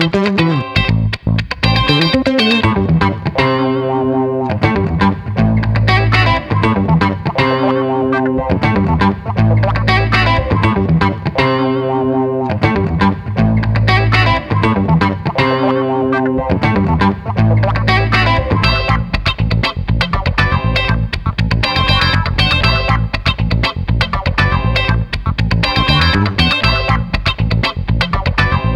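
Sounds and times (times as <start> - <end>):
funky street guitars chase music: 0.0 - 28.7.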